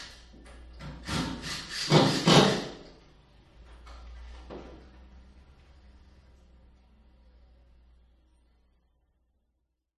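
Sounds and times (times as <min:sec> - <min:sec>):
electrician drilling into office wall in other room with reverb: 0:00.8 - 0:02.8.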